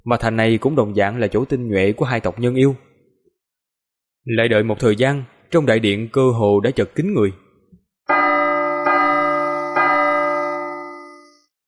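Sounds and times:
speech: 0:00.0 - 0:02.9, 0:04.2 - 0:07.4
resonant bell chiming in a great hall before an auction: 0:08.1 - 0:11.5.

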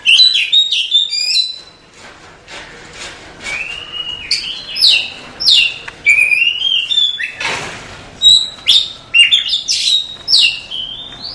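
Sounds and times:
Oriental magpie-robin singing: 0:00.0 - 0:01.8, 0:03.5 - 0:07.4, 0:08.2 - 0:11.3.

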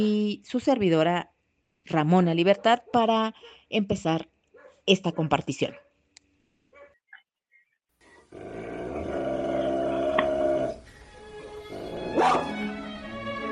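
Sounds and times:
speech: 0:00.0 - 0:05.8
dog barking: 0:02.5 - 0:03.6, 0:04.5 - 0:06.0, 0:06.7 - 0:07.0, 0:11.8 - 0:12.6
dogs growling: 0:08.2 - 0:10.8, 0:11.5 - 0:12.6.

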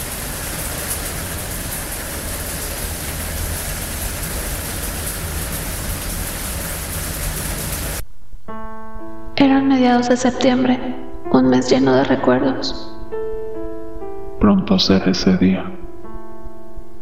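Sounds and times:
rain falling in Seoul in autumn: 0:00.0 - 0:08.0
speech: 0:09.4 - 0:12.9, 0:14.5 - 0:15.7.

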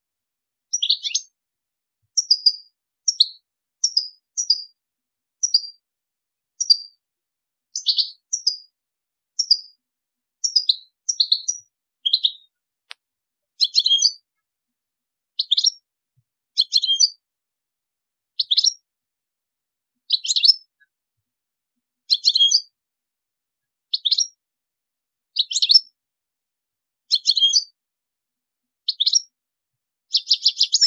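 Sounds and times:
European goldfinch song: 0:00.0 - 0:22.8, 0:23.5 - 0:26.0, 0:26.8 - 0:27.9, 0:28.5 - 0:30.8
click: 0:12.8 - 0:13.1.

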